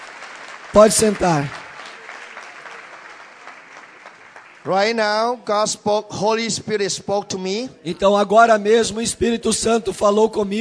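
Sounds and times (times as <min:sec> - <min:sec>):
congregation clapping for God during a church service: 0:00.0 - 0:05.8
speech: 0:00.8 - 0:01.6, 0:04.7 - 0:10.5.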